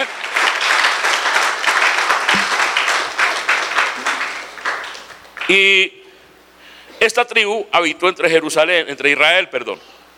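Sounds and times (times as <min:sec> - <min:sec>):
audience applause: 0:00.0 - 0:05.5
speech: 0:05.5 - 0:06.0, 0:07.0 - 0:10.0.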